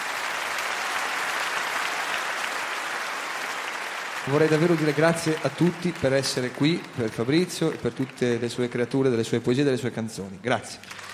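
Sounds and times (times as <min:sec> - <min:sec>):
audience applause: 0:00.0 - 0:09.1, 0:10.8 - 0:11.1
speech: 0:04.2 - 0:11.1.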